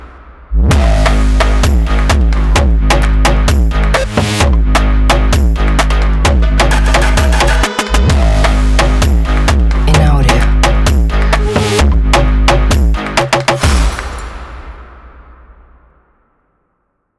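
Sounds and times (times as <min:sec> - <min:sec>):
Brazilian phonk music: 0:00.7 - 0:14.2.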